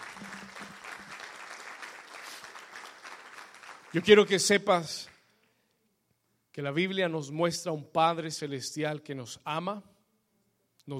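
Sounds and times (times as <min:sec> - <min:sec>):
audience applauding: 0:00.0 - 0:05.1
speech: 0:03.9 - 0:05.1, 0:06.6 - 0:09.9.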